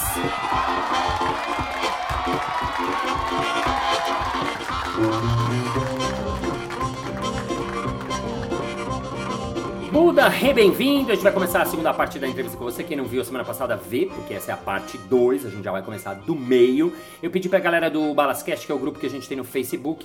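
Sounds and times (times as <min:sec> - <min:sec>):
crowd audience applause: 0:00.0 - 0:09.8
crowd audience cheering: 0:00.0 - 0:11.7
speech: 0:00.2 - 0:01.7, 0:10.2 - 0:20.0.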